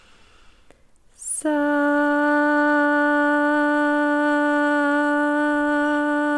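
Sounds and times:
breathy inhale before chanting: 0:00.0 - 0:00.9
sustained chanted tone in a throat chakra meditation: 0:01.4 - 0:06.3.

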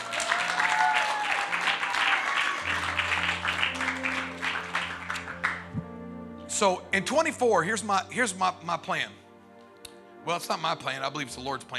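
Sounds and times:
audience applause: 0:00.0 - 0:05.8
speech: 0:06.6 - 0:09.2, 0:10.2 - 0:11.7.

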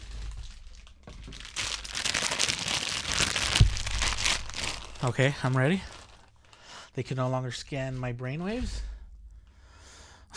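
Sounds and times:
aluminum foil hat crinkling as it is put on: 0:00.0 - 0:06.7
speech: 0:05.0 - 0:05.9, 0:07.0 - 0:08.9.

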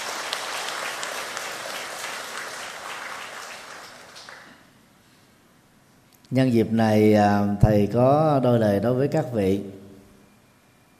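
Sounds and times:
audience applause: 0:00.0 - 0:04.6
speech: 0:06.3 - 0:09.8.

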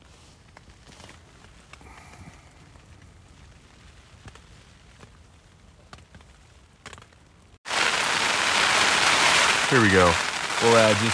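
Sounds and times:
hail pattering during a deer-hunting outing: 0:07.7 - 0:11.1
loud dense steady rushing hiss: 0:07.7 - 0:11.1
speech: 0:09.7 - 0:11.1.

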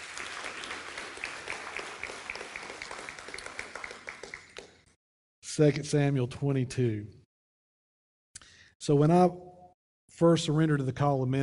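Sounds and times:
audience round of applause: 0:00.0 - 0:04.8
speech: 0:05.6 - 0:07.2, 0:08.8 - 0:09.5, 0:10.2 - 0:11.4.

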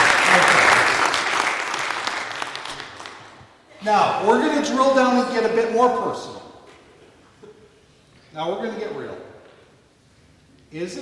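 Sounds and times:
audience applause: 0:00.0 - 0:03.4
speech: 0:03.8 - 0:06.5, 0:08.4 - 0:09.3, 0:10.7 - 0:10.9.

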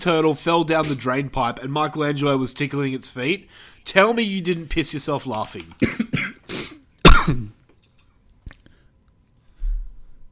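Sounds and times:
speech: 0:00.0 - 0:06.6, 0:07.2 - 0:07.6
person with COVID coughing: 0:05.8 - 0:07.6.

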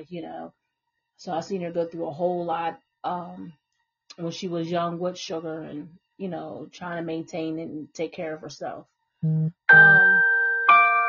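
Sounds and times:
speech: 0:00.0 - 0:00.6, 0:01.2 - 0:10.3
phone notification chime: 0:09.3 - 0:11.0.

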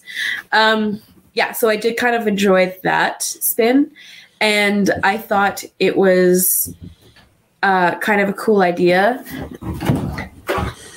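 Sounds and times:
speech: 0:00.5 - 0:07.0, 0:07.6 - 0:10.7
cat knocking on a door: 0:09.5 - 0:10.8.

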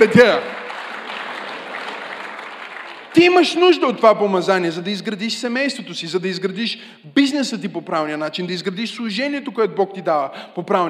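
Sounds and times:
speech: 0:00.0 - 0:00.6, 0:03.2 - 0:10.8
audience applause: 0:00.0 - 0:03.5.

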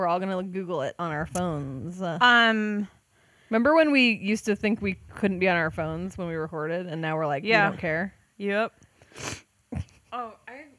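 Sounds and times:
speech: 0:00.0 - 0:10.4
sniffing into the microphone: 0:09.0 - 0:09.5.

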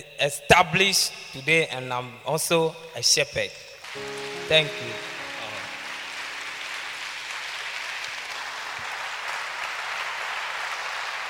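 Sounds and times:
speech: 0:00.0 - 0:05.1
audience clapping: 0:03.9 - 0:11.2.

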